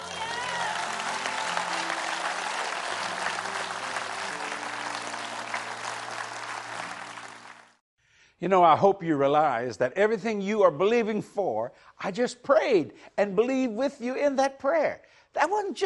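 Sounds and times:
audience clapping hands: 0:00.0 - 0:07.8
speech: 0:08.4 - 0:15.8.

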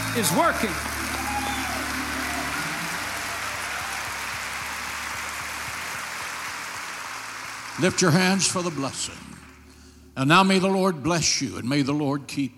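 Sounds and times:
audience clapping hands: 0:00.0 - 0:09.8
speech: 0:00.2 - 0:01.0, 0:07.8 - 0:09.3, 0:10.2 - 0:12.5.

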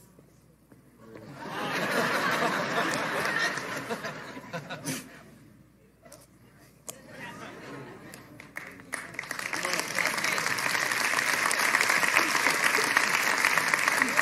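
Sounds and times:
laughter: 0:01.2 - 0:05.3, 0:07.0 - 0:08.4, 0:11.3 - 0:14.2
applause: 0:02.8 - 0:03.9, 0:08.1 - 0:14.2.

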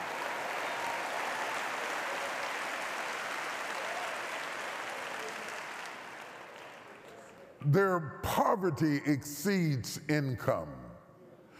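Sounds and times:
audience applause: 0:00.0 - 0:07.3
speech: 0:07.6 - 0:10.8.

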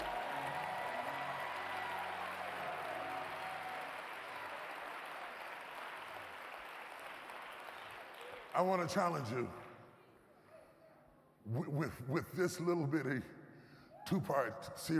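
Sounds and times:
audience clapping hands: 0:00.0 - 0:09.9
speech: 0:08.6 - 0:09.6, 0:11.5 - 0:13.4, 0:14.1 - 0:14.9.

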